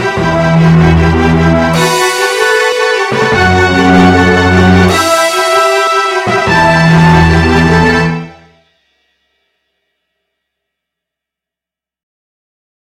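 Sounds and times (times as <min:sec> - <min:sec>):
MIDI boss battle music: 0:00.0 - 0:08.7.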